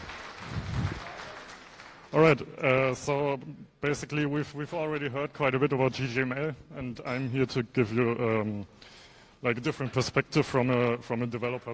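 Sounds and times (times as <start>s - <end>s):
audience applause: 0.0s - 2.3s
speech: 2.1s - 11.7s.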